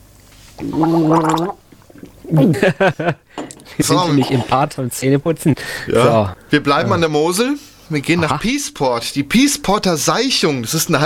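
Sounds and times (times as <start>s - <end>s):
person gargling a sip of water: 0.6s - 2.6s
speech: 0.6s - 11.0s
laughter: 2.3s - 3.3s.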